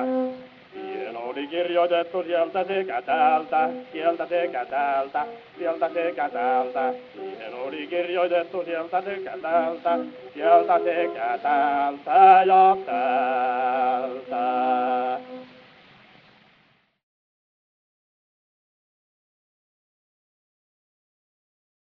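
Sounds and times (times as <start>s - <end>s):
gramophone playing: 0.0s - 15.6s.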